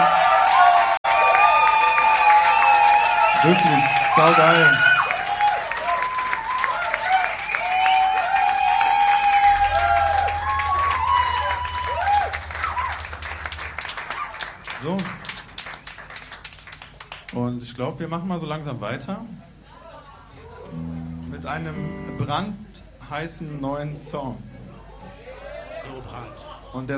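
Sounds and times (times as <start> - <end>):
audience applause and cheering: 0.0 - 17.3
speech: 3.4 - 4.9, 17.8 - 19.4, 21.5 - 24.5, 26.0 - 26.9.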